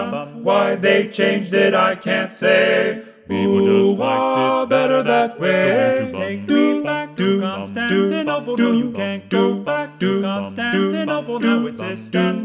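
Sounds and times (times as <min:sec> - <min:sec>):
four-part male choir singing with predominant baritone: 0:00.0 - 0:12.4.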